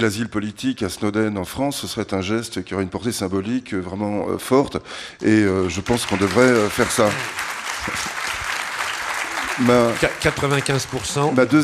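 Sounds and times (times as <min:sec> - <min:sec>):
speech: 0:00.0 - 0:08.2, 0:09.6 - 0:11.6
audience applause: 0:05.6 - 0:11.6.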